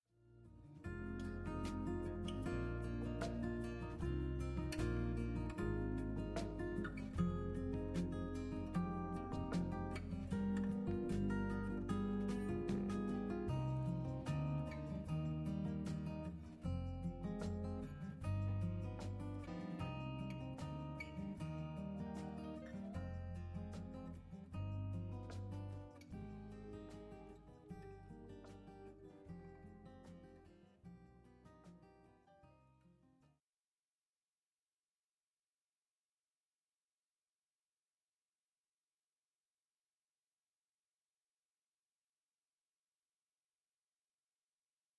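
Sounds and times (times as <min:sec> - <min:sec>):
music: 0:00.2 - 0:33.2.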